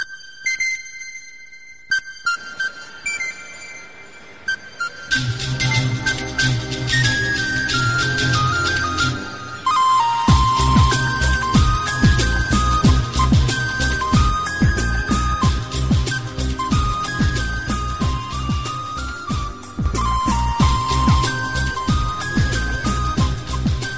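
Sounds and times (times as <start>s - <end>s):
flute: 0.0s - 23.9s
beats: 2.4s - 23.9s.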